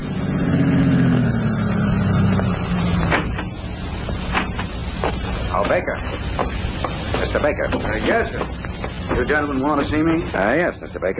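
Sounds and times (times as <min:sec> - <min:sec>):
car engine humming as vehicle pulls up and stops: 0:00.0 - 0:11.1
sharp clicks and knocks of car settling: 0:03.0 - 0:09.4
speech: 0:07.4 - 0:11.1.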